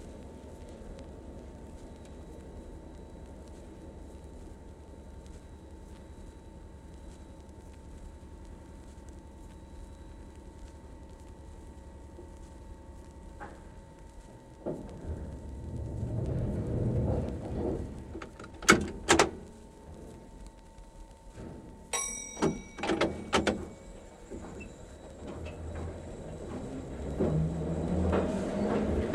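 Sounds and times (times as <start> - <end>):
Tube stock train running with stops and starts heard from the cab interior: 14.6 - 20.1, 22.0 - 29.1.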